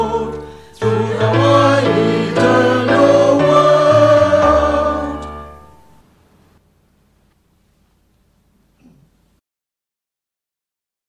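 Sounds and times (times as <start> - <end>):
school song sung in English: 0.0 - 6.0.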